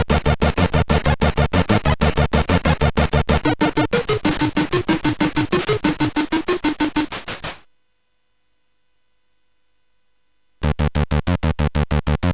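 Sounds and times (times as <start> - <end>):
techno music on a sid CSG8580R5 chip: 0.0 - 7.6, 10.6 - 12.3.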